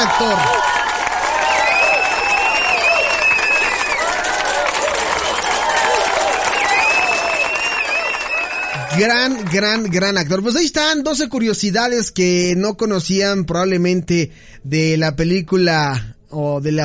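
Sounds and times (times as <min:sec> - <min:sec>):
speech: 0:00.0 - 0:00.7, 0:09.0 - 0:16.8
cheers: 0:00.0 - 0:10.1
standing ovation applause: 0:00.0 - 0:10.4
high whistles: 0:01.3 - 0:04.1, 0:06.3 - 0:09.0.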